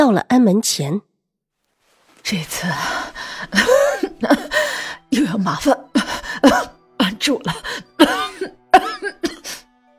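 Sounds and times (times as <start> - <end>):
speech: 0.0 - 1.1, 2.2 - 5.8, 6.4 - 9.2
old woman coughing: 3.6 - 4.6, 6.0 - 9.6.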